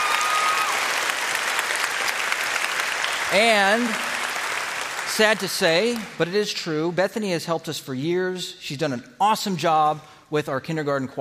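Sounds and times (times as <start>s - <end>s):
audience applause: 0.0s - 6.3s
speech: 3.3s - 4.1s, 5.2s - 11.1s.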